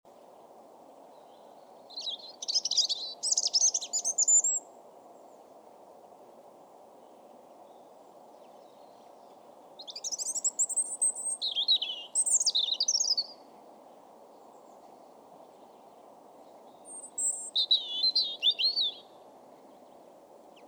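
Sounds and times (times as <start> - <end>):
European robin song: 1.2 - 4.7, 7.7 - 13.4, 16.4 - 19.2.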